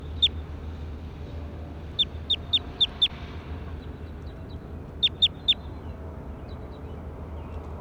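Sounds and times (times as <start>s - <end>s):
bird chirping: 0.0s - 0.4s, 1.9s - 3.2s, 4.0s - 6.9s.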